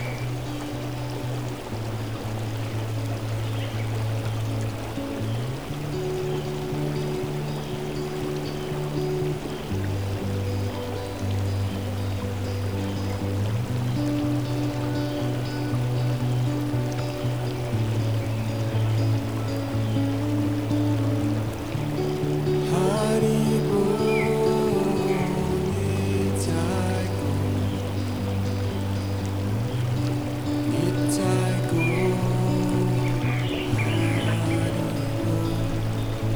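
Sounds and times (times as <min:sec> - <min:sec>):
gentle relaxing melody: 0:00.0 - 0:36.3.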